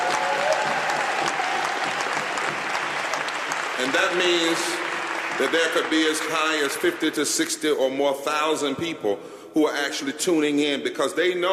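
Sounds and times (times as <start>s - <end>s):
audience applause at a mass meeting: 0.0s - 7.4s
speech: 3.8s - 4.8s, 5.4s - 11.5s.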